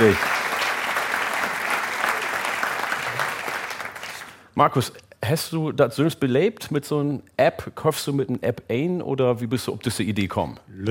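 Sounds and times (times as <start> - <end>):
speech: 0.0 - 0.3, 4.6 - 10.8
audience clapping hands for a photo: 0.0 - 4.4.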